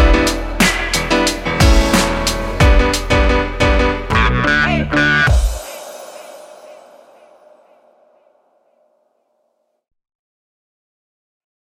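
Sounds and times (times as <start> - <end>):
relaxing lo-fi hip hop music: 0.0 - 8.2.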